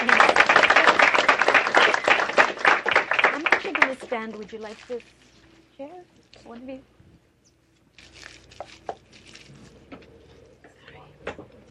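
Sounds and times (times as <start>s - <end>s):
audience applauding to welcome a speaker to a lunch talk: 0.0s - 4.1s
speech: 4.2s - 5.2s, 5.8s - 7.0s.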